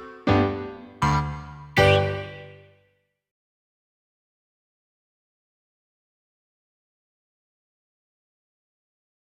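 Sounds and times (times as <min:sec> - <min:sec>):
slow nursery rhyme accompaniment: 0:00.0 - 0:02.7.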